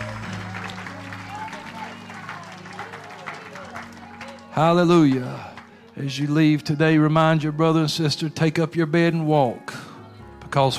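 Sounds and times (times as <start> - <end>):
audience shouting praise: 0.0 - 4.9
audience hand clapping: 0.0 - 6.4
speech: 4.6 - 9.7, 10.5 - 10.7.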